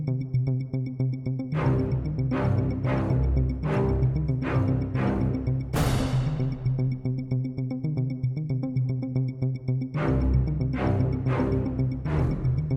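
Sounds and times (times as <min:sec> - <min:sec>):
music track at 114 bpm: 0:00.5 - 0:12.7.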